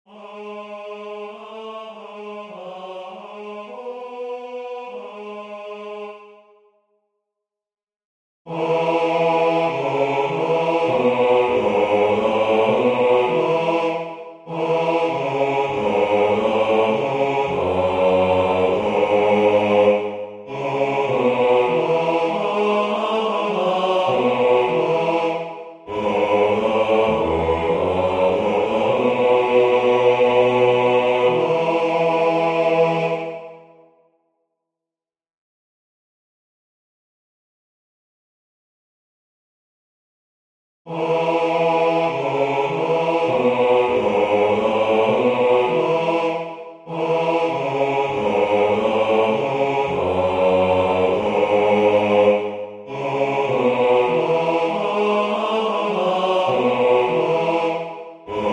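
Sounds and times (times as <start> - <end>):
bass voice singing a hymn: 8.5 - 33.5, 40.9 - 58.5.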